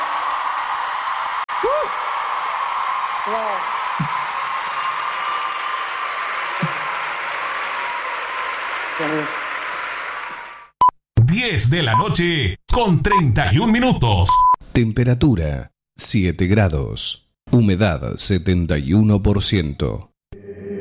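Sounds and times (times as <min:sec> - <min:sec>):
audience applause: 0:00.0 - 0:10.8
speech: 0:03.2 - 0:04.3, 0:09.0 - 0:09.4, 0:11.4 - 0:20.1.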